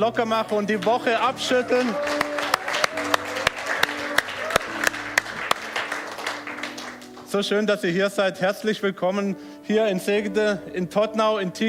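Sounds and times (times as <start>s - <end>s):
speech: 0.0s - 2.2s, 7.3s - 11.6s
audience applause: 0.8s - 7.3s.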